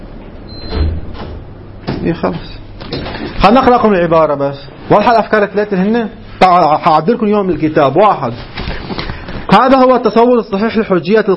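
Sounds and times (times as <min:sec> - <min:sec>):
hum: 0:00.0 - 0:11.3
door being opened: 0:00.6 - 0:02.1
speech: 0:02.0 - 0:08.9, 0:09.5 - 0:11.3.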